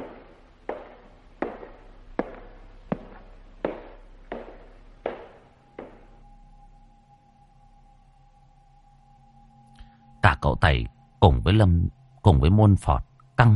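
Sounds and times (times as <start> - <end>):
wooden clogs clomping on floor: 0.0 - 6.1
speech: 10.4 - 13.5.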